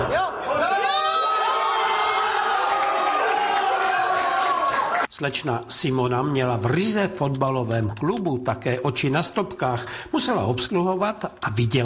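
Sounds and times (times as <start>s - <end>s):
fans cheering after a goal: 0.0s - 5.1s
speech: 5.2s - 11.8s.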